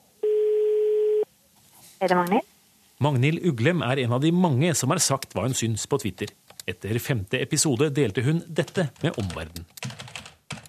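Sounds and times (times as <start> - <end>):
telephone line tone while calling: 0.2 - 1.3
speech: 2.0 - 9.8.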